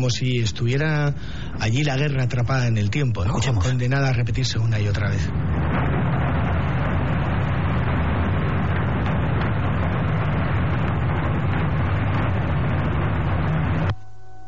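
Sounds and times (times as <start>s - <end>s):
speech: 0.0s - 5.6s
twin-engine warplanes flying: 4.9s - 13.9s
bombs falling: 5.0s - 13.9s.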